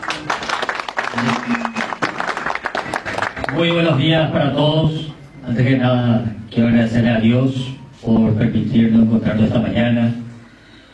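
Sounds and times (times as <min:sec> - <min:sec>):
audience applause: 0:00.0 - 0:03.8
speech: 0:03.5 - 0:10.2.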